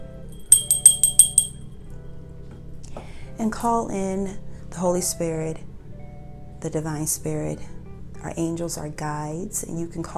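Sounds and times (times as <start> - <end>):
small bell ringing: 0.3 - 1.6
speech: 3.4 - 5.7, 6.6 - 10.1.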